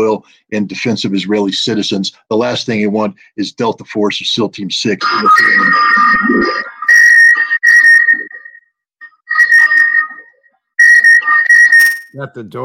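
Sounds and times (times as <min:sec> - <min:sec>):
speech: 0:00.0 - 0:06.7, 0:12.2 - 0:12.6
Skype incoming call ringtone: 0:05.0 - 0:12.1.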